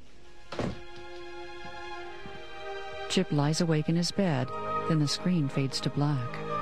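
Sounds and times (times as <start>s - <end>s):
door being shut: 0.5s - 0.9s
speech: 3.1s - 6.5s.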